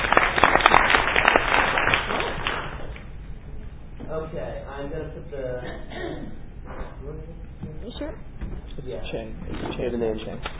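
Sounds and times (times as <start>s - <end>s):
audience applause: 0.0s - 3.0s
speech: 5.1s - 6.4s, 7.0s - 10.5s.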